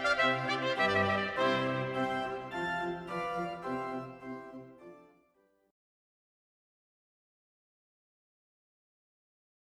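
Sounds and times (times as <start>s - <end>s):
concerto for two trumpets: 0.0s - 5.0s.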